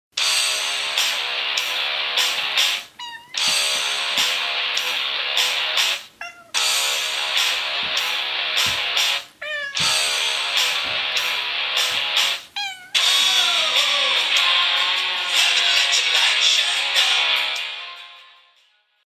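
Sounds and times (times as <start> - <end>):
cat rock music: 0.2 - 18.2.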